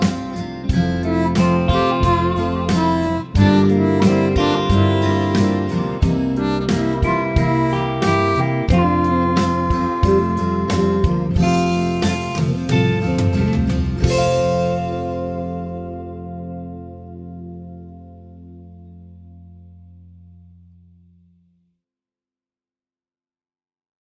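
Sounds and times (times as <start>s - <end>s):
F 90 harp: 0.0s - 17.2s.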